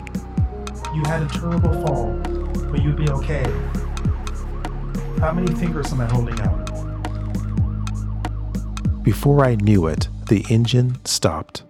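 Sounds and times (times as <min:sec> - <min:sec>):
emergency vehicle sirens wailing: 0:00.0 - 0:10.5
speech: 0:00.9 - 0:03.8, 0:05.2 - 0:06.6, 0:09.0 - 0:11.6.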